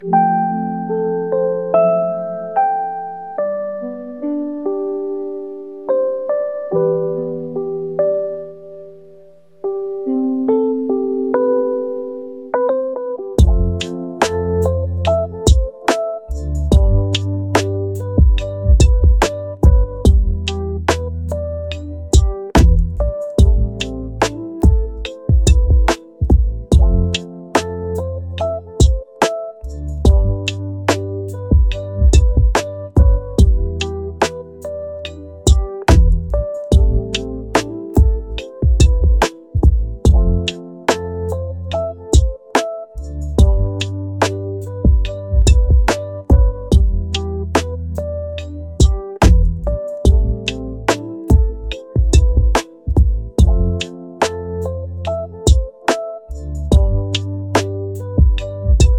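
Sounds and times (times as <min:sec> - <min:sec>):
rainy lofi music: 0:00.0 - 0:58.9.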